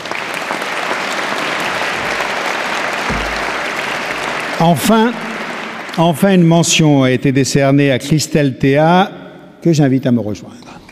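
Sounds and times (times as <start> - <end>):
audience applause: 0.0 - 6.8
speech: 4.6 - 5.2, 6.0 - 10.6.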